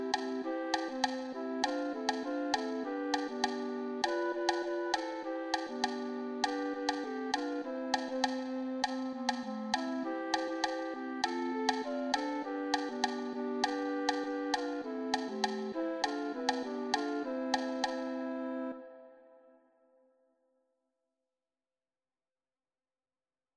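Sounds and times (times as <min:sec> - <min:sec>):
percussion: 0:00.0 - 0:18.2.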